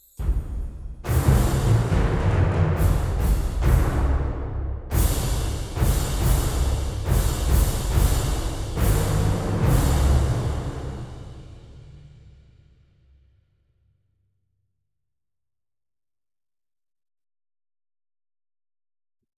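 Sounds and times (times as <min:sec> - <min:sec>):
percussion-only arrangement of a Christmas carol: 0:00.0 - 0:12.1.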